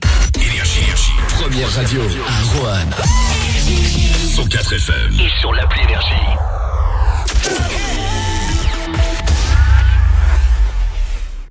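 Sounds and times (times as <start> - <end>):
radio jingle: 0.0 - 11.4.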